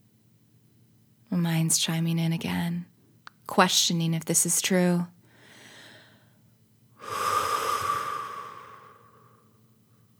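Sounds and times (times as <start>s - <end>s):
speech: 1.5s - 2.9s, 3.5s - 5.2s
soft breath and long forceful out-breath with faint whistling: 7.0s - 9.4s.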